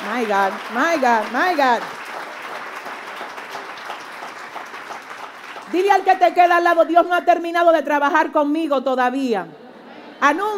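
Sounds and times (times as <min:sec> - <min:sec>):
audience applause: 0:00.0 - 0:06.1
speech: 0:00.2 - 0:02.0, 0:05.7 - 0:09.6, 0:10.2 - 0:10.5.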